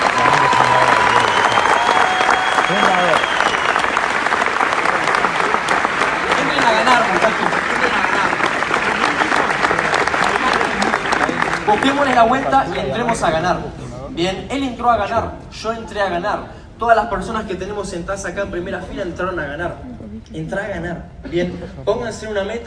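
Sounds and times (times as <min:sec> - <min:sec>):
cheers and whistles: 0:00.0 - 0:04.0
large audience applause: 0:00.0 - 0:12.9
speech: 0:11.8 - 0:22.6.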